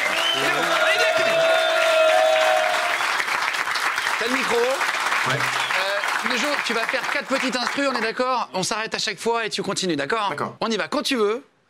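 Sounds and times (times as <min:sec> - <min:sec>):
audience applause: 0:00.0 - 0:08.4
speech: 0:04.5 - 0:05.6, 0:06.2 - 0:11.5.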